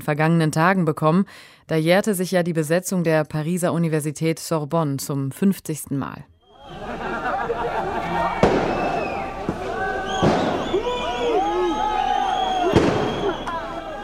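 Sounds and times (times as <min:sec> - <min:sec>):
speech: 0:00.0 - 0:07.1
laughter: 0:06.6 - 0:14.0
police firecrackers and tear gas grenades bursting: 0:08.3 - 0:14.0.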